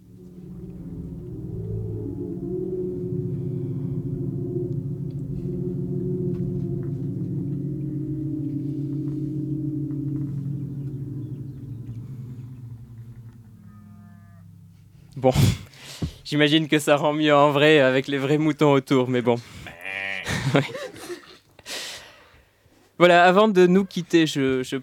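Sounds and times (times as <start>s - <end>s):
wind resonating through the Ringing Singing Tree sound sculpture in English countryside: 0.0s - 15.7s
speech: 15.2s - 15.6s, 16.3s - 19.6s, 20.5s - 20.8s, 23.0s - 24.8s
laughter: 20.1s - 21.4s.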